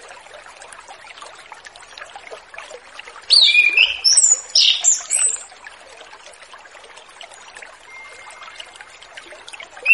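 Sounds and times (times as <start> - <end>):
orange-headed thrush warbling song: 3.3 - 5.5, 9.8 - 9.9.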